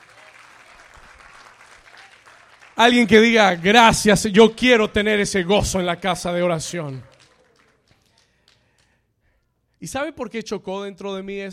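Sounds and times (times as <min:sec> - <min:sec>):
audience applause: 0:00.0 - 0:04.2, 0:06.3 - 0:08.9
speech: 0:02.8 - 0:07.1, 0:09.8 - 0:11.5.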